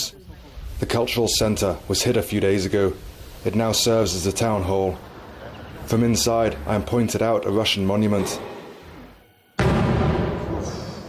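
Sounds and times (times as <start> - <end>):
speech: 0.8 - 5.1, 5.9 - 8.5
outgoing artillery boom in a deserted front-line town: 9.6 - 11.0.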